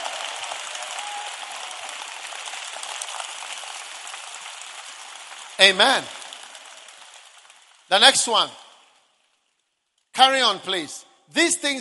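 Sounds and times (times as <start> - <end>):
crowd clapping: 0.0 - 9.2
speech: 5.6 - 6.2, 7.9 - 8.6, 10.2 - 11.7.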